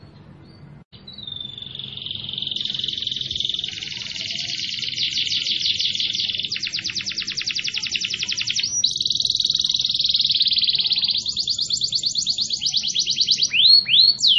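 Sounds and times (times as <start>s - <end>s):
canary song: 0.0s - 14.3s.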